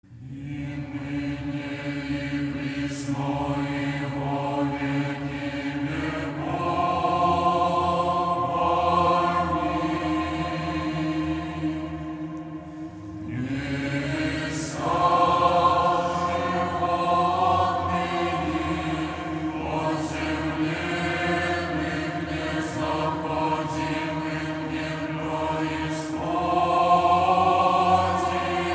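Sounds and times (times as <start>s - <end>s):
Orthodox vespers stichera chant for the Exaltation of the Cross: 0.0s - 28.7s.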